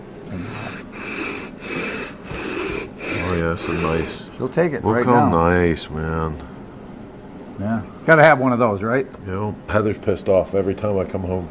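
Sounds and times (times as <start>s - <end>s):
block lapped back and forth on sandpaper: 0.3s - 4.3s
speech: 3.4s - 6.6s, 7.6s - 11.4s.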